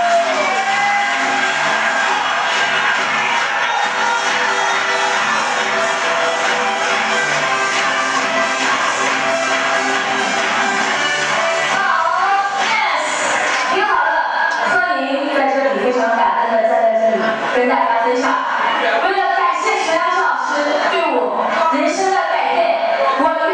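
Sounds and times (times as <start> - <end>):
audience applause: 0.0 - 13.8
crowd cheering: 0.0 - 23.5.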